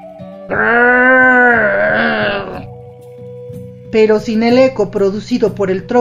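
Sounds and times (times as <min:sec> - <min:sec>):
speech: 0:00.5 - 0:00.9, 0:03.9 - 0:06.0
little puma's roar sounding like a meow: 0:00.5 - 0:02.7.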